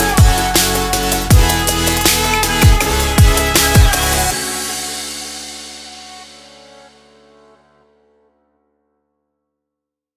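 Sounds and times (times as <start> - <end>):
Arabic future bass kit: 0.0 - 5.0.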